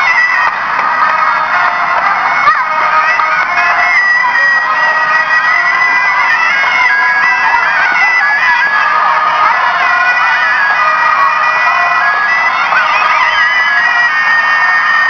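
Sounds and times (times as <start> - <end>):
parade in Jaipur: 0.0 - 15.0.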